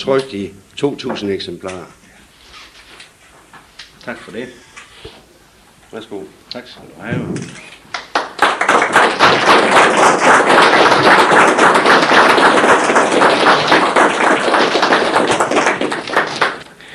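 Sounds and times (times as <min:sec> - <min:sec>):
speech: 0:00.0 - 0:02.0, 0:04.0 - 0:05.2, 0:05.9 - 0:07.7
applause in a community hall: 0:07.9 - 0:16.8.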